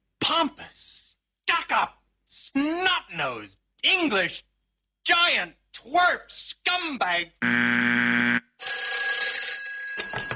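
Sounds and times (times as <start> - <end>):
speech: 1.7 - 8.2
telephone ringing: 8.6 - 10.3.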